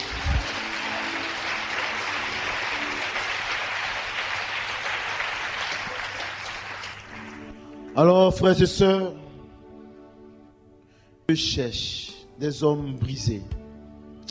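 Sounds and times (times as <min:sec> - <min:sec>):
audience applause: 0:00.0 - 0:07.9
speech: 0:08.0 - 0:09.2, 0:11.3 - 0:13.6.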